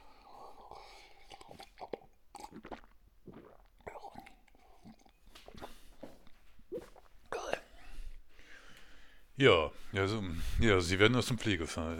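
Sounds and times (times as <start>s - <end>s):
person sipping a drink with quiet slurps: 0.0s - 7.7s
speech: 9.4s - 11.9s.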